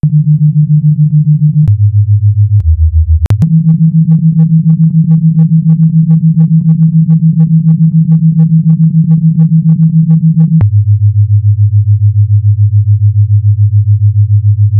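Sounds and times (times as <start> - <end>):
sine wave tone: 0.0 - 14.7.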